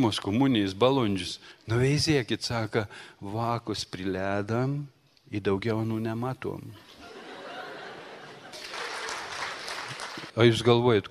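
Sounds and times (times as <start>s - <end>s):
speech: 0.0s - 7.0s, 10.4s - 11.0s
laughter: 6.8s - 10.0s
audience applause: 8.4s - 10.4s.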